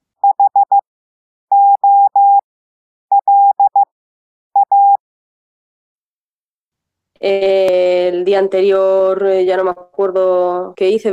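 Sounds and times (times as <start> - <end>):
Morse code beeps in a steady mid-pitched tone: 0.2 - 0.8, 1.5 - 2.4, 3.1 - 3.9, 4.6 - 5.0
speech: 7.2 - 11.1.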